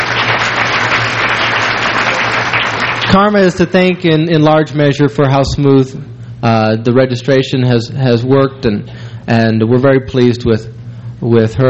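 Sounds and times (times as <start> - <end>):
symposium audience clapping: 0.0 - 3.6
speech: 3.1 - 11.6.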